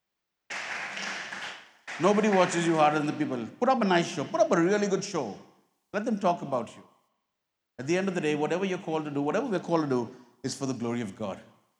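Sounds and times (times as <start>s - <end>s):
audience clapping: 0.5s - 3.4s
speech: 2.0s - 6.9s, 7.8s - 11.5s.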